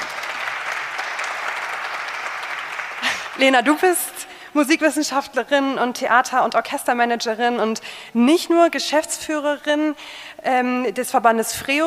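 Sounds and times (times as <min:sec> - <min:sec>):
applause for a guest at a music and culture event: 0:00.0 - 0:04.0
speech: 0:03.4 - 0:11.8.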